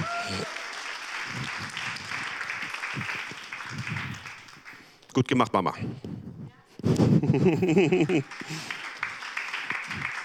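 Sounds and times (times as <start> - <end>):
applause: 0.0 - 5.0, 7.7 - 10.2
speech: 5.2 - 6.2, 6.8 - 8.7
laughter: 7.0 - 8.8.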